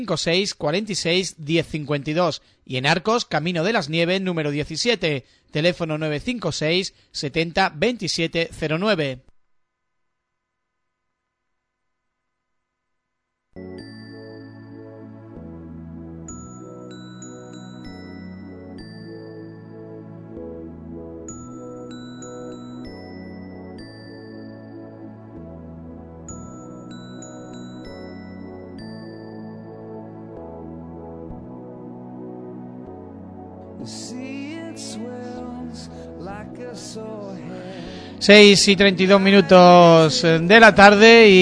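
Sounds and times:
speech: 0.0 - 9.3, 38.3 - 41.4
background music: 13.6 - 41.4.

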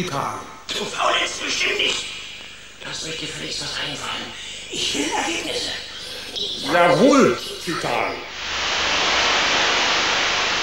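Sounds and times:
speech: 0.0 - 2.1, 2.8 - 8.3
sudden gush of water: 8.3 - 10.6.

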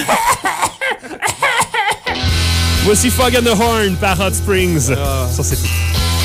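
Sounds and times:
person coughing in the studio: 0.0 - 2.3
speech: 2.9 - 6.1.

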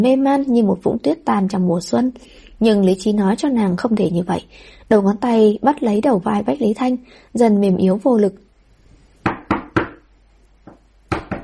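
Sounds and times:
speech: 0.0 - 8.4
heavy pounding knocks on a door: 9.2 - 10.0, 10.7 - 11.4.

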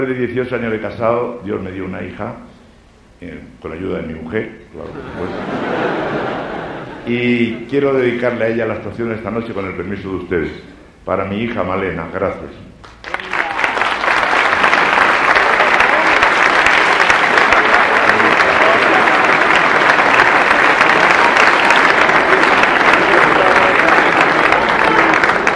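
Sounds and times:
speech: 0.0 - 2.5, 3.2 - 6.5, 7.1 - 12.8
laughter: 4.8 - 7.6, 17.0 - 25.5
audience applause: 12.8 - 25.5.

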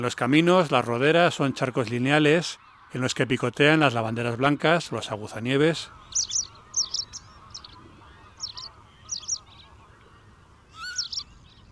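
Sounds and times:
speech: 0.0 - 6.4
thousands of wild geese and cranes honking in thick fog over flooded fields: 0.0 - 11.2
low steady murmur: 2.6 - 11.7.

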